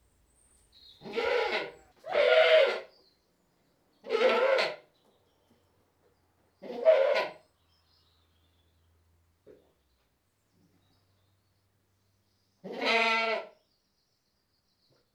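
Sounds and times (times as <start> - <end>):
British Saanen goat bleating: 1.0 - 2.8, 4.1 - 4.8, 12.7 - 13.4.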